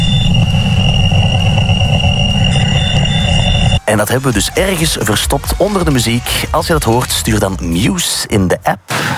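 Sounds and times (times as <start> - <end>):
Wow Signal real recorded radio signal: 0.0 - 7.8
speech: 3.9 - 9.1.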